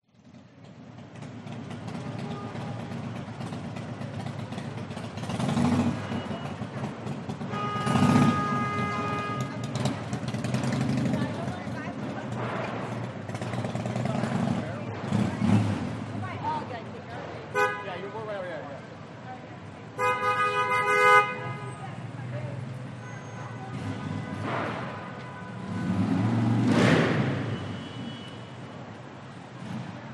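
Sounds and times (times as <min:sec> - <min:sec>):
New York City rush hour traffic: 0:00.0 - 0:30.1
car horns honking: 0:01.9 - 0:03.0, 0:07.3 - 0:10.6, 0:17.5 - 0:18.2, 0:19.9 - 0:22.0, 0:22.8 - 0:28.8.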